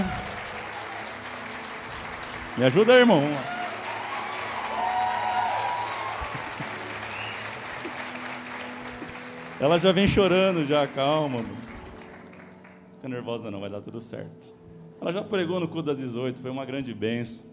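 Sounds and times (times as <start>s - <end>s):
audience applauding: 0.0s - 12.8s
speech: 2.6s - 3.5s, 9.6s - 11.7s, 13.0s - 17.5s.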